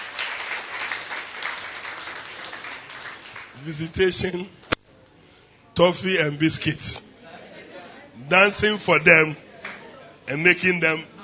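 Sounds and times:
audience clapping: 0.0 - 4.1, 9.6 - 9.8
speech: 3.6 - 4.6, 5.8 - 7.1, 8.3 - 9.4, 10.3 - 11.1.

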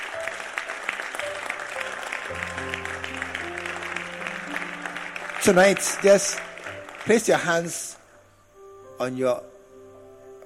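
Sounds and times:
audience clapping: 0.0 - 8.0
speech: 2.3 - 3.4, 5.4 - 8.0, 9.0 - 9.5.

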